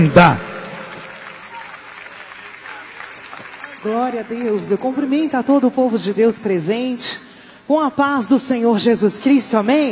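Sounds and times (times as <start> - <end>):
speech: 0.0 - 0.5, 3.8 - 9.9
audience applauding: 0.0 - 6.1.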